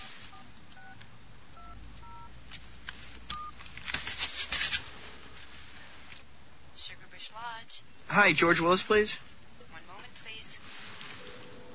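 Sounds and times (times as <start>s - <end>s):
telephone number being dialed: 1.6s - 2.3s
speech: 8.2s - 9.3s.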